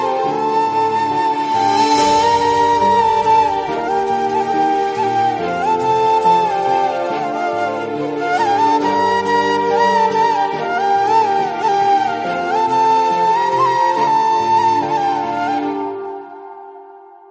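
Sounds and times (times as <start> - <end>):
song background music theme: 0.0 - 17.3.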